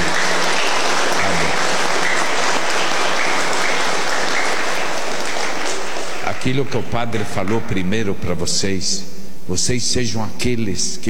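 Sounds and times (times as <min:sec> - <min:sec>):
audience applause: 0:00.0 - 0:07.0
speech: 0:06.4 - 0:11.0.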